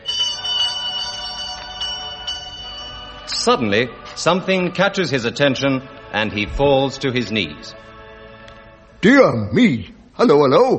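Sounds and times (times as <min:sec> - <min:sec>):
doorbell ringing: 0:00.0 - 0:03.5
speech: 0:03.3 - 0:07.9, 0:09.0 - 0:10.7.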